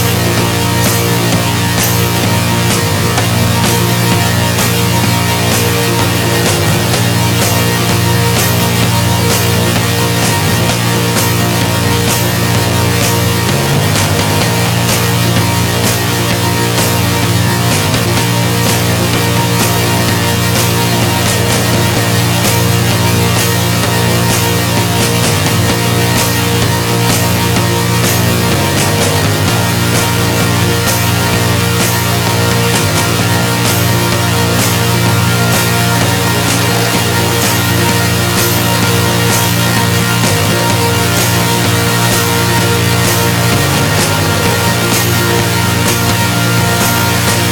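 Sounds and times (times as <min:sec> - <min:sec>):
drums: 0:00.0 - 0:47.5
organ: 0:00.0 - 0:47.5.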